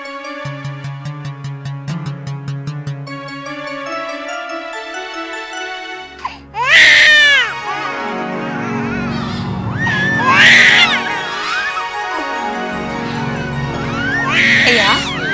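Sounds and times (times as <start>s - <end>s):
newborn twin babies crying: 6.6s - 15.3s.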